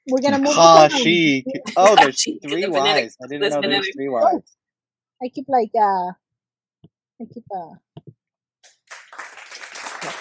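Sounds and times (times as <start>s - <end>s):
speech: 0.1s - 4.6s, 5.2s - 6.2s, 7.2s - 7.8s
clapping sound effect: 8.6s - 10.1s.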